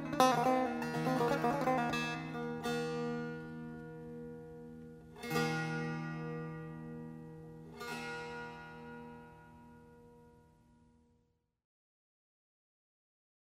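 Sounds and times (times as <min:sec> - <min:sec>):
azari tar music: 0:00.0 - 0:10.8.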